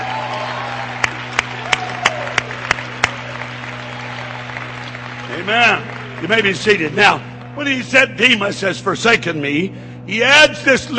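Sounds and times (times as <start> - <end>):
crowd shouting hallelujah: 0.0 - 6.2
crowd clapping: 0.0 - 7.8
speech: 5.4 - 10.9.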